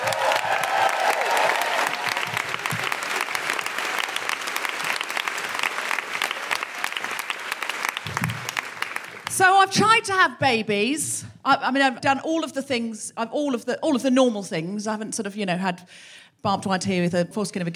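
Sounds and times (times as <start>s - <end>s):
audience applause: 0.0s - 9.4s
speech: 9.6s - 17.7s.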